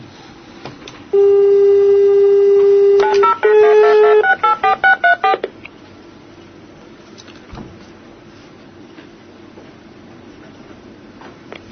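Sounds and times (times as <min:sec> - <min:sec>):
telephone dial tone: 0:01.2 - 0:05.4
DTMF keypad beeps dialling a phone number: 0:02.9 - 0:05.5.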